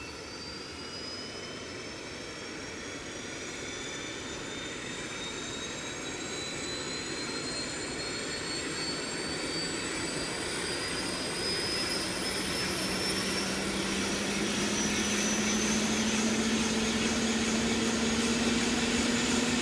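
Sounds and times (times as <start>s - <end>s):
helicopter engine starting up: 1.3s - 19.6s.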